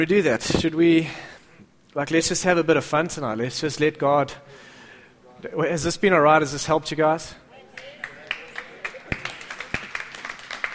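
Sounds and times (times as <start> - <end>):
speech: 0.0 - 1.3, 2.0 - 4.7, 5.4 - 7.9
clapping: 7.7 - 10.7.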